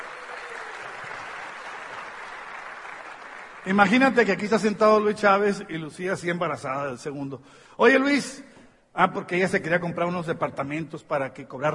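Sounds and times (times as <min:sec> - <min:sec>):
audience applause: 0:00.0 - 0:04.0
speech: 0:03.6 - 0:11.7.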